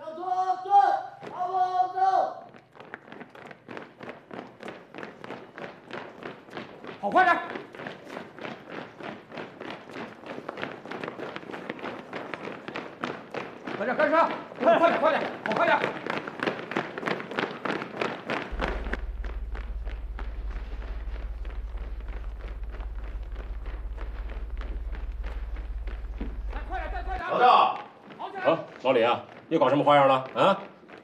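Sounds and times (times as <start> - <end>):
soldiers running laps around a drill ground: 0.9 - 31.0
low hum: 18.5 - 27.3.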